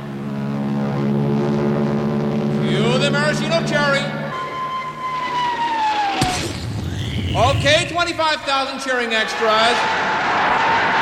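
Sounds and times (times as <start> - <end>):
air force planes flying overhead: 0.0 - 7.9
speech: 3.1 - 4.2, 7.4 - 10.8.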